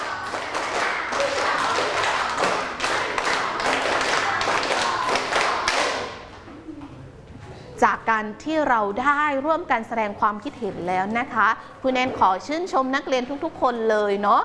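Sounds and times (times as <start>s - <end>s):
students clapping a rhythmic step pattern: 0.0s - 6.5s
speech: 7.8s - 14.4s.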